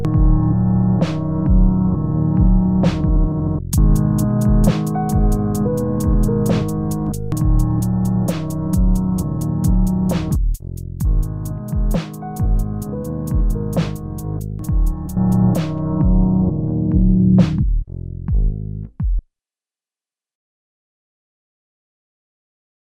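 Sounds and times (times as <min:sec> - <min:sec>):
Roland SP-404MK2 vinyl and cassette simulation: 0:00.0 - 0:10.4, 0:11.1 - 0:17.6.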